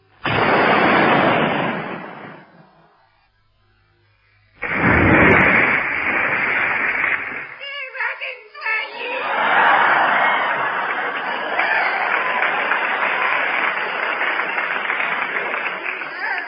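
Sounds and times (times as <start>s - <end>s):
cannon firing a salute: 0.1s - 2.9s, 4.6s - 7.6s
laughter: 8.6s - 16.4s.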